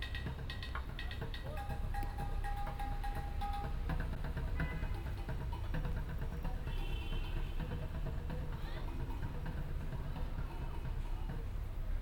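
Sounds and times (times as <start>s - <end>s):
street drummer drumming on paint pots in San Francisco: 0.0s - 11.9s.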